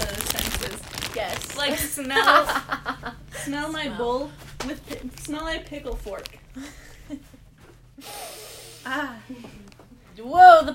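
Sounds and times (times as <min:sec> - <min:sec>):
low room noise: 0:00.0 - 0:10.7
speech: 0:01.6 - 0:02.8, 0:03.4 - 0:07.2, 0:08.9 - 0:09.6, 0:10.2 - 0:10.7
laughter: 0:02.1 - 0:03.4
deep breath in: 0:08.0 - 0:09.0.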